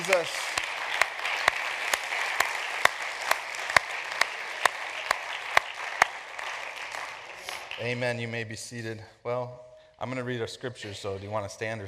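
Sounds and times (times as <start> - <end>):
audience clapping hands: 0.0 - 8.3
speech: 0.1 - 0.6, 7.8 - 11.8.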